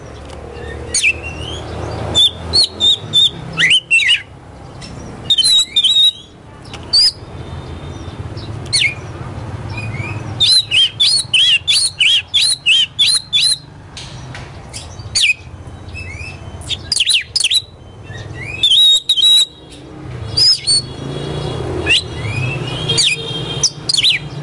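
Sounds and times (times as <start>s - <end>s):
Oriental magpie-robin singing high whistles: 0.6s - 4.3s, 5.2s - 6.3s, 6.9s - 7.3s, 9.7s - 13.7s, 14.7s - 19.8s, 20.4s - 20.9s, 21.8s - 24.3s.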